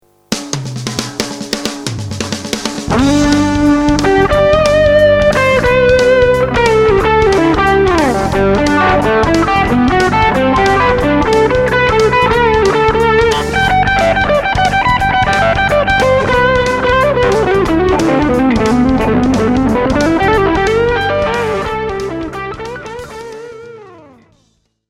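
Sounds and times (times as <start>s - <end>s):
Fender G-DEC 3 Thirty guitar amplifier: 0.0s - 24.4s.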